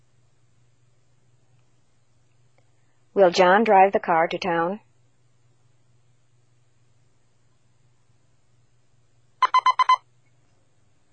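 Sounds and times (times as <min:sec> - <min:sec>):
speech: 0:03.2 - 0:04.8
telephone ringing: 0:09.4 - 0:10.0.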